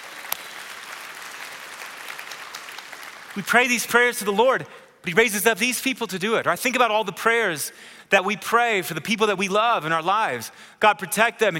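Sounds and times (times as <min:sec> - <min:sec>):
audience hand clapping: 0:00.0 - 0:04.4
speech: 0:03.4 - 0:11.5.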